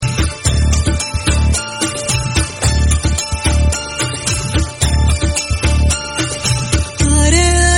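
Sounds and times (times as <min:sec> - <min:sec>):
Kannada ringtone: 0:00.0 - 0:07.6.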